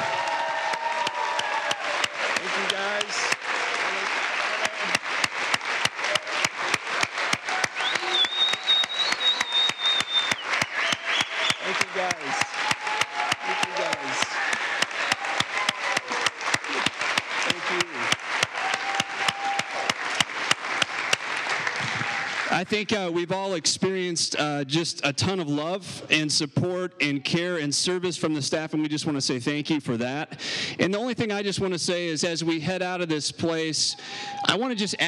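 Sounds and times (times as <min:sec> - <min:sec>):
audience applause: 0:00.0 - 0:23.1
speech: 0:22.7 - 0:35.0.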